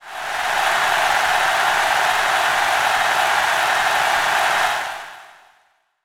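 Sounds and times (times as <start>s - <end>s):
applause: 0.0s - 5.6s.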